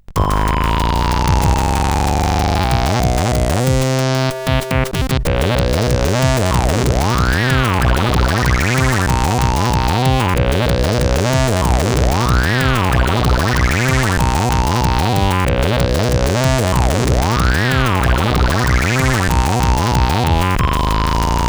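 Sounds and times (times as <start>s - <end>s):
techno music on CSG8580R5: 0.0s - 21.4s.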